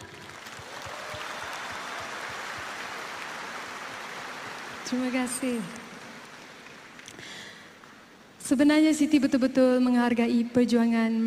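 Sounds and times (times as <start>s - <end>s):
audience applause: 0.0s - 7.5s
speech: 4.9s - 5.8s, 8.5s - 11.2s.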